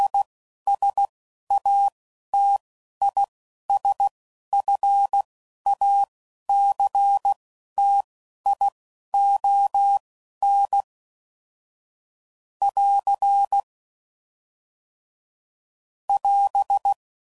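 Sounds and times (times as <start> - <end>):
CW Morse code groups at 10 WPM: 0.0 - 10.9, 12.7 - 13.6, 16.2 - 17.0.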